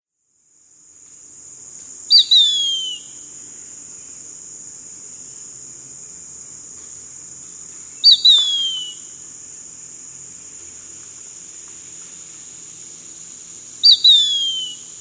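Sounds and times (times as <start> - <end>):
bird calling with a downward whistled note: 2.1 - 3.1, 8.0 - 9.0, 13.8 - 14.8.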